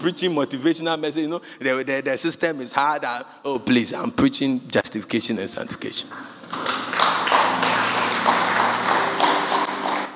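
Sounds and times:
speech: 0.0 - 7.0
weak audience clapping: 6.2 - 10.1.

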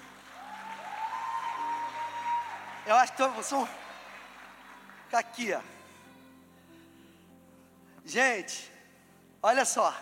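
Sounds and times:
audience applause: 0.0 - 6.1
speech: 2.9 - 3.8, 5.1 - 5.8, 8.1 - 8.7, 9.4 - 10.0.

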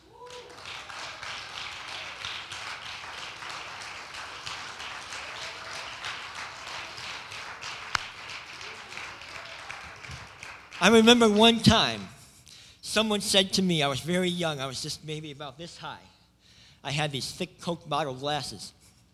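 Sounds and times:
audience clapping hands in praise: 0.0 - 12.0
speech: 10.8 - 12.1, 13.0 - 16.1, 16.8 - 18.8.

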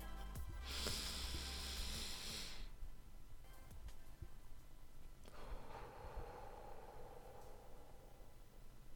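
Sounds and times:
slow deep breathing exercise: 0.6 - 2.8, 5.2 - 8.9.

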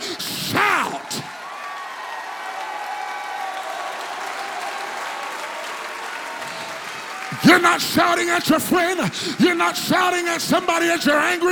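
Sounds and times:
audience clapping hands: 0.0 - 11.4
speech: 7.4 - 11.4.

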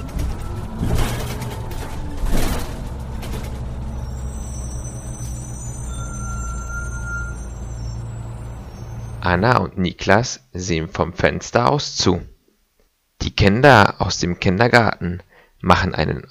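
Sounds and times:
garbage truck arriving: 0.0 - 9.6
speech: 9.3 - 12.3, 13.2 - 16.3.

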